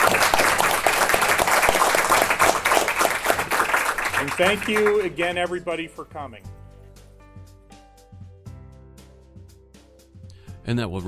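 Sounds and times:
audience applause: 0:00.0 - 0:05.6
speech: 0:04.4 - 0:06.6, 0:10.7 - 0:11.0.

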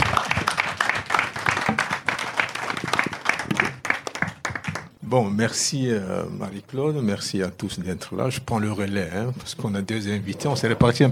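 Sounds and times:
audience applauding the speakers: 0:00.0 - 0:05.0
speech: 0:05.1 - 0:11.1.

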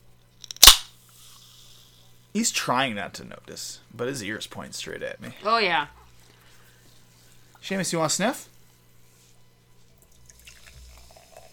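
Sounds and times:
soda can being cracked open: 0:00.4 - 0:00.9
speech: 0:02.3 - 0:06.0, 0:07.6 - 0:08.5.

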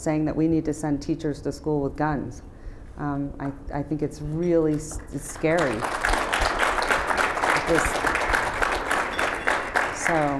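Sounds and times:
speech: 0:00.0 - 0:06.1, 0:07.7 - 0:08.2, 0:10.1 - 0:10.3
audience applause: 0:05.3 - 0:10.3.

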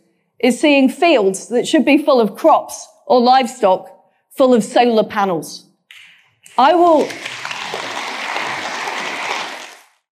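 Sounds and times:
speech: 0:00.4 - 0:05.7, 0:06.5 - 0:07.5
audience applause at a political hustings: 0:06.7 - 0:10.0.

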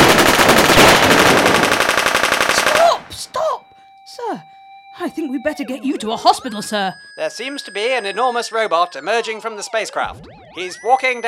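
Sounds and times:
machine-gun fire at a robot, radio drama sound effect: 0:00.0 - 0:03.1
speech: 0:05.2 - 0:11.2.

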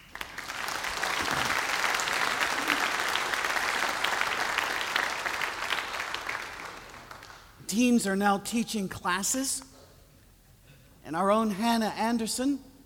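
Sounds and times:
audience applause: 0:00.0 - 0:07.5
speech: 0:07.7 - 0:09.7, 0:11.1 - 0:12.7.

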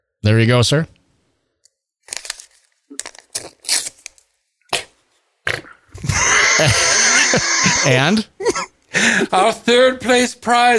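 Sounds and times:
speech: 0:00.2 - 0:01.0, 0:06.6 - 0:10.7
envelope handled and torn open: 0:02.0 - 0:05.0
laughter: 0:06.0 - 0:09.4.

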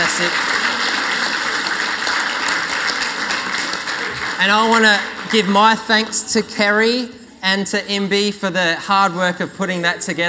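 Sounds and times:
audience applause: 0:00.0 - 0:05.6
speech: 0:00.2 - 0:00.6, 0:04.4 - 0:10.2.

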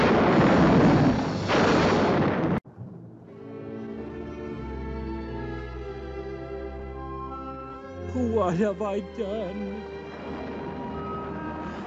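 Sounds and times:
lightning strike sound effect: 0:00.0 - 0:02.6
quieter sustained musical tones: 0:02.9 - 0:11.8
speech: 0:08.4 - 0:09.9.

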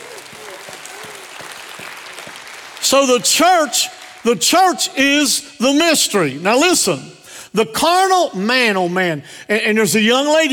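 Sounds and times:
audience applause in a roomy hall: 0:00.0 - 0:04.3
speech: 0:02.9 - 0:10.5.

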